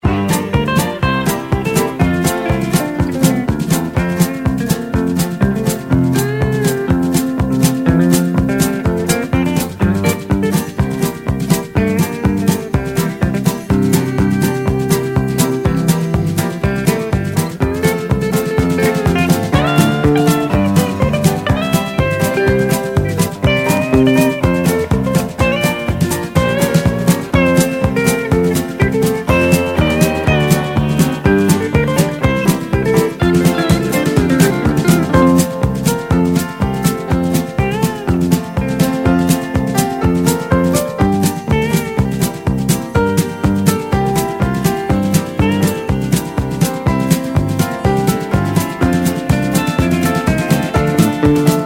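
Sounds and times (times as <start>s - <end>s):
music: 0.0s - 51.6s.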